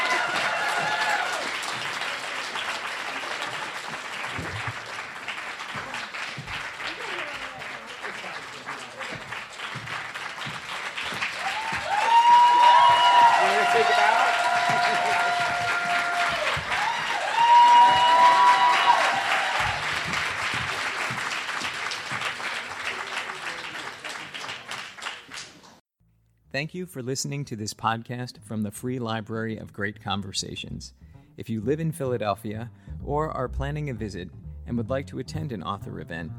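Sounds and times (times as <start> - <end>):
audience applause at a library conversation event: 0.0 - 25.8
speech: 26.6 - 36.3.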